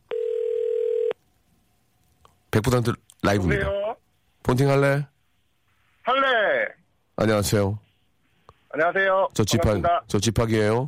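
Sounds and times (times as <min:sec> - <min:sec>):
telephone ringback tone: 0:00.1 - 0:01.2
speech: 0:02.5 - 0:05.1, 0:07.2 - 0:07.8, 0:08.7 - 0:10.8.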